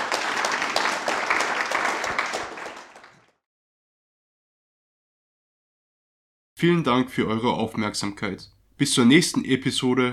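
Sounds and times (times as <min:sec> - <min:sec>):
audience applause: 0:00.0 - 0:03.4
speech: 0:06.6 - 0:10.1.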